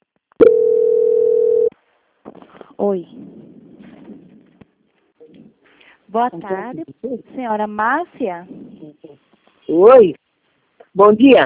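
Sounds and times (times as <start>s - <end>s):
telephone tone while a call is transferred: 0.4s - 1.7s
speech: 2.8s - 3.3s, 6.1s - 8.6s, 9.7s - 10.2s, 11.0s - 11.4s.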